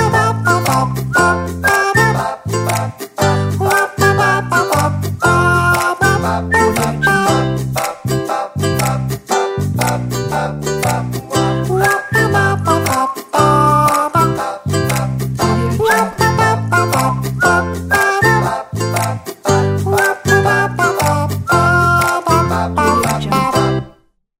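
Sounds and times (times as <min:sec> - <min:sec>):
person singing: 0:00.0 - 0:23.9
ukulele: 0:00.0 - 0:24.0.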